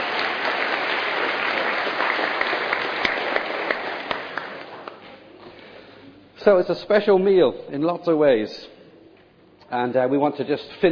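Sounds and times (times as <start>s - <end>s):
audience applause: 0.0s - 5.0s
speech: 6.4s - 8.7s, 9.7s - 10.9s.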